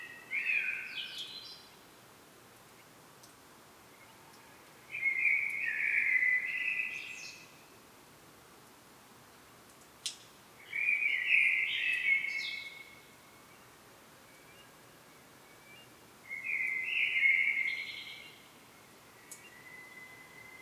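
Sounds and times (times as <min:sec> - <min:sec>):
Common blackbird song: 0:00.0 - 0:01.8, 0:04.0 - 0:07.6, 0:10.6 - 0:13.7, 0:14.3 - 0:20.6
faint background hiss: 0:00.0 - 0:20.6.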